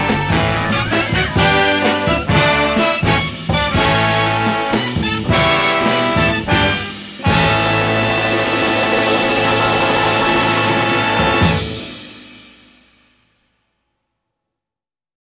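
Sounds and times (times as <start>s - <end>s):
jazz bass folk tune: 0.0s - 11.9s.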